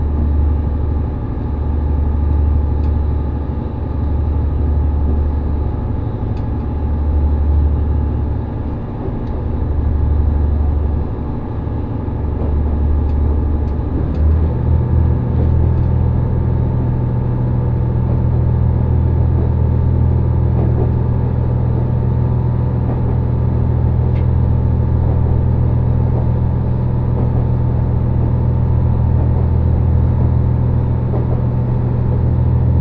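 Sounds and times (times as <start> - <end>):
Resort Shirakami 4 train engine drone on the Gonō Line: 0.0 - 32.7.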